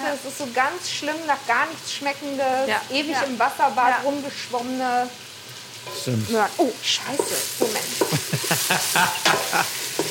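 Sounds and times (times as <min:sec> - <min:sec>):
food searing in a hot pan: 0:00.0 - 0:10.1
speech: 0:00.1 - 0:09.8
quick rhythmic scrapes or stirs: 0:05.7 - 0:06.4, 0:07.0 - 0:10.1
laughter: 0:08.0 - 0:09.8.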